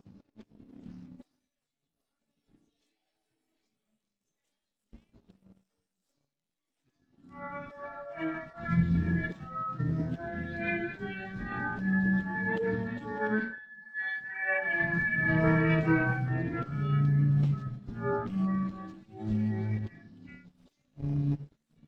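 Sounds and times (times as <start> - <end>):
guitar: 7.3 - 21.2.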